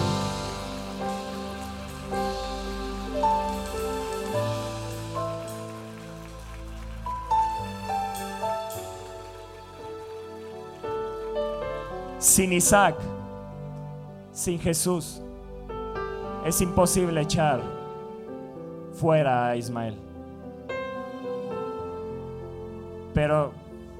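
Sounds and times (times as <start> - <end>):
crowd applauding: 0.0 - 12.8
sustained keyboard chords: 0.0 - 23.9
speech: 12.2 - 13.1, 14.4 - 15.2, 16.4 - 17.8, 19.0 - 20.1, 23.2 - 23.6.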